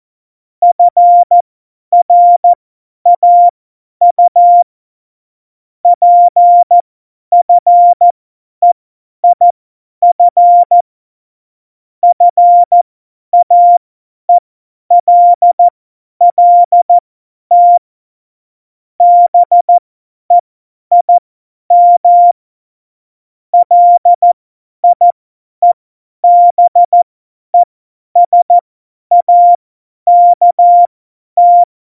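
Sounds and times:
CW Morse code beeps: 0.6s - 1.4s, 2.0s - 2.5s, 3.1s - 4.7s, 6.0s - 8.0s, 10.1s - 10.8s, 12.0s - 12.8s, 13.4s - 13.8s, 14.9s - 15.7s, 16.3s - 17.8s, 19.0s - 22.4s, 23.6s - 27.0s, 27.6s - 31.7s.

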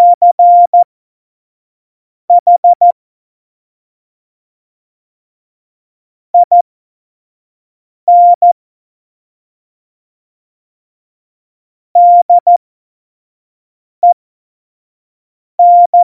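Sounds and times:
CW Morse code beeps: 0.0s - 0.8s, 2.4s - 2.9s, 6.4s - 6.6s, 8.1s - 8.6s, 12.0s - 12.6s, 15.6s - 16.0s.

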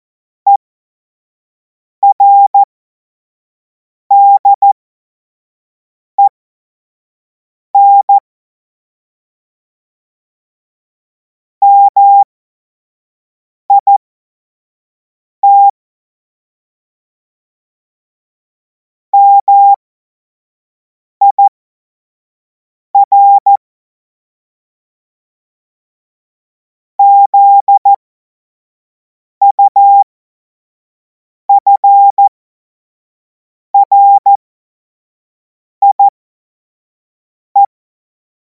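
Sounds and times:
CW Morse code beeps: 2.0s - 2.7s, 4.1s - 4.8s, 7.8s - 8.1s, 11.6s - 12.3s, 15.4s - 15.7s, 19.2s - 19.8s, 21.2s - 21.5s, 23.0s - 23.6s, 27.0s - 28.0s, 29.4s - 30.0s, 31.5s - 32.3s, 33.8s - 34.4s, 35.8s - 36.1s.

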